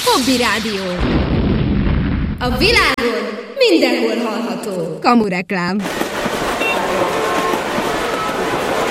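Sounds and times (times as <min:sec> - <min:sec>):
speech: 0:00.2 - 0:01.4, 0:02.4 - 0:06.1
locomotive rumbling roar with faint tonal whines: 0:05.8 - 0:08.8.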